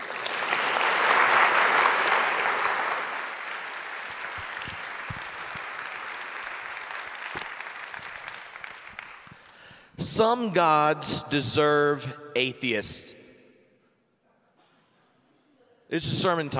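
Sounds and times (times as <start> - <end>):
audience clapping welcoming a speaker to St. Andrew: 0.0 - 9.9
speech: 10.0 - 13.2, 15.9 - 16.5.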